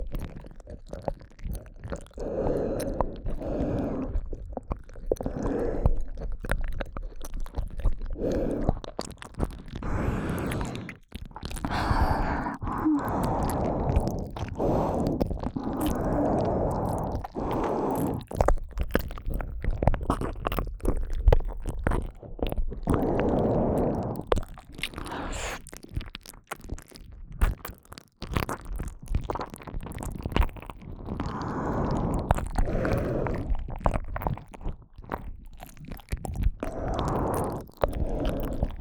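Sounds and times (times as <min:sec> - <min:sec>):
deep ear licking ASMR loop in the right ear: 0:00.0 - 0:38.7.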